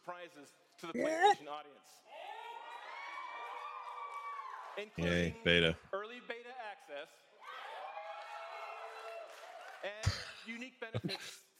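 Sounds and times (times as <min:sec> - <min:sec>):
speech: 0:00.1 - 0:02.2, 0:04.8 - 0:07.3, 0:09.8 - 0:11.5
crowd cheering and whooping at a video game presentation: 0:02.1 - 0:05.0, 0:07.4 - 0:10.1.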